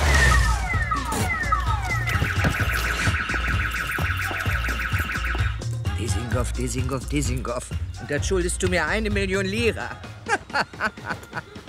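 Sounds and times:
electronic alarm blaring: 0.0s - 5.7s
speech: 6.4s - 11.5s
laughter: 10.0s - 11.6s.

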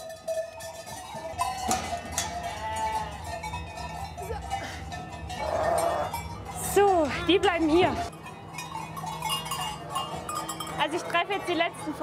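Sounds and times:
sheep bells clanking and jangling: 0.0s - 12.0s
sheep bleating: 1.9s - 3.4s, 5.4s - 6.2s
speech: 7.3s - 8.1s, 10.9s - 12.0s.

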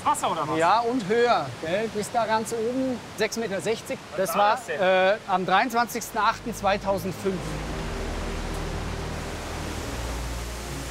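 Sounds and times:
speech: 0.0s - 7.7s
waterfall roaring: 0.0s - 10.9s.

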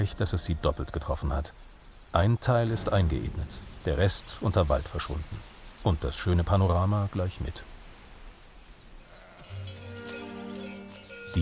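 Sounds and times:
speech: 0.0s - 7.7s
soft outdoor ambience: 0.0s - 11.3s
sheep or goat bleating: 9.1s - 10.2s.

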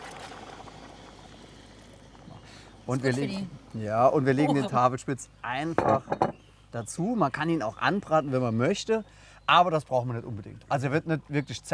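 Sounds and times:
water pouring into a cooking pot for boiling Tafelspitz beef: 0.0s - 2.3s
speech: 2.9s - 11.7s.

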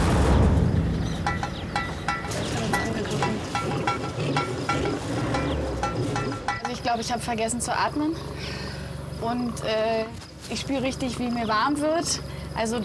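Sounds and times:
animal paw striking car bodywork: 1.0s - 6.9s
speech: 7.0s - 8.6s, 9.2s - 12.8s.

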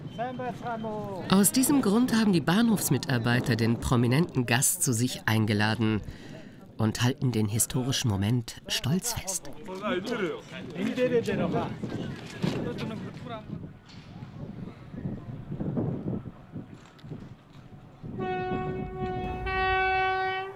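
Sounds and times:
speech: 0.2s - 14.0s
Trans-Mongolian railway train passing: 15.3s - 20.5s.

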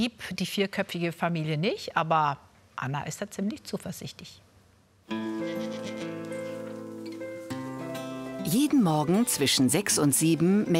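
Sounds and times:
speech: 0.0s - 4.5s, 5.1s - 5.9s, 8.4s - 10.7s
goats bleating on a farm: 5.2s - 6.9s.

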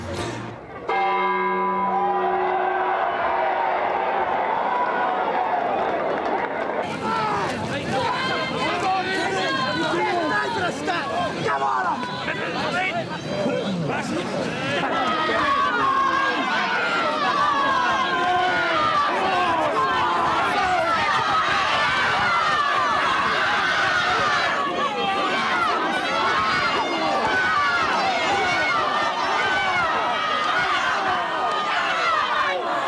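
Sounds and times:
crowd at mass street football game shouting and chattering: 0.0s - 32.8s
church bell ringing: 0.9s - 3.8s.

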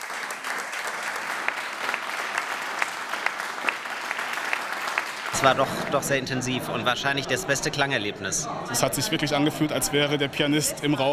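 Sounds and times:
audience applause in Mainz and Wehrheim: 0.0s - 5.6s
speech: 5.4s - 11.1s.

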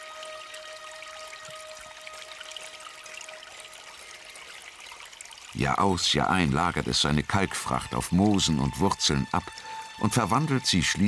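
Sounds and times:
lime-rich groundwater trickling and dripping from small sinter springs on valley slopes: 0.0s - 11.0s
speech: 5.6s - 11.0s.

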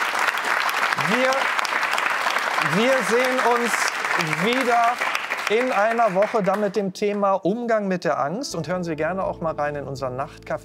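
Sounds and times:
studio audience applause: 0.0s - 6.8s
speech: 1.1s - 1.6s, 2.7s - 10.6s.

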